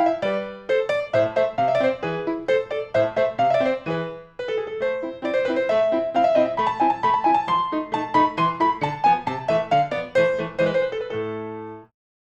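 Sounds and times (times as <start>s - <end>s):
grand allegro music: 0.0s - 11.9s.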